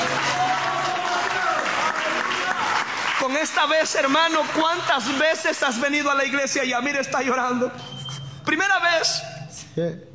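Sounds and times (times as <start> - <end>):
audience applause: 0.0 - 5.6
speech: 3.2 - 7.9, 8.5 - 10.1.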